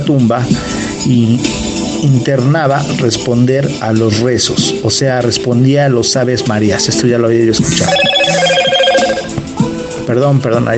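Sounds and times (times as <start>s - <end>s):
speech: 0.1s - 8.8s, 10.1s - 10.7s
phone message notification electronic chime: 7.8s - 9.4s.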